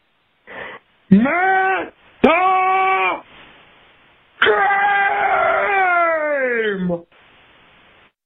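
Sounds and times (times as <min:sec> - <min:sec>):
speech: 0:01.1 - 0:01.4
recorded scream: 0:01.1 - 0:03.3, 0:04.4 - 0:07.0.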